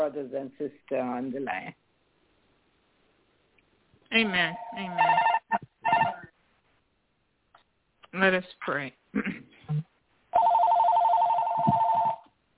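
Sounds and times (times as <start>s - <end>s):
speech: 0.0s - 1.8s, 4.1s - 5.2s, 8.1s - 9.9s
phone ringing: 4.5s - 6.3s, 10.3s - 12.3s.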